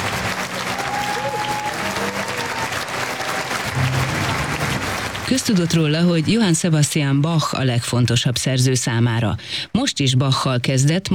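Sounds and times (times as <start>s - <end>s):
concert audience applauding: 0.0s - 7.0s
speech: 5.3s - 11.1s.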